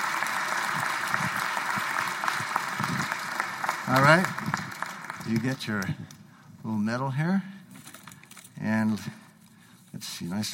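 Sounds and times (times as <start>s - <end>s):
audience round of applause: 0.0s - 5.9s
speech: 3.9s - 4.5s, 5.3s - 7.5s, 8.6s - 9.2s, 10.2s - 10.5s.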